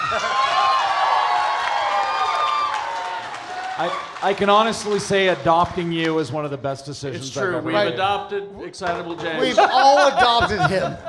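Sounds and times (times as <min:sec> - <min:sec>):
laughter: 0:00.0 - 0:00.6, 0:09.2 - 0:11.0
crowd cheering and high-pitched whoops: 0:00.0 - 0:04.4
crowd applause: 0:00.0 - 0:06.2
speech: 0:03.8 - 0:11.0.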